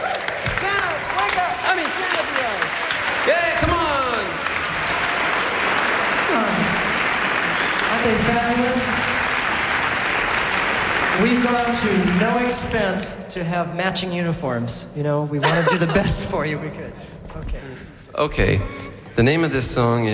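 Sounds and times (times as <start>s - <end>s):
audience applauding: 0.0s - 13.0s
speech: 11.2s - 20.1s
laughter: 15.4s - 16.6s.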